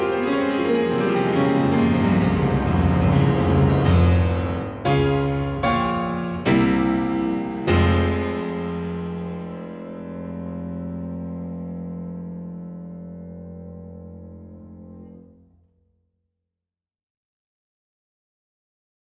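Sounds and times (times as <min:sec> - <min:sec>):
ballad: 0:00.0 - 0:11.0.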